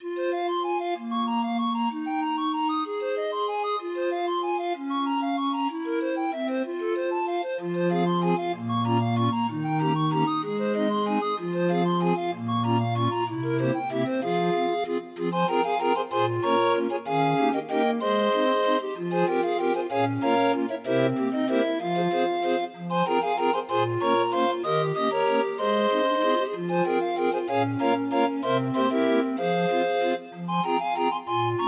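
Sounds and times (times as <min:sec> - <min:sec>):
31-note grind organ playing a folk tune: 0:00.2 - 0:31.6.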